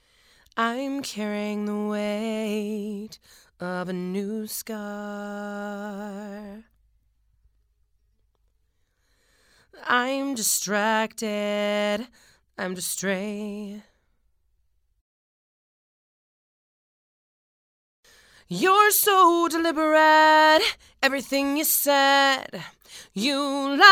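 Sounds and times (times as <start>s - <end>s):
female vocals: 0.6s - 6.7s, 9.8s - 13.9s, 18.5s - 23.9s.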